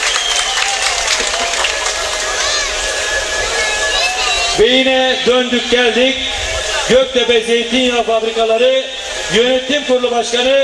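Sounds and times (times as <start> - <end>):
audience applause at an event: 0.0 - 4.6
faint tonal sounds: 0.7 - 10.1
speech: 4.6 - 10.6.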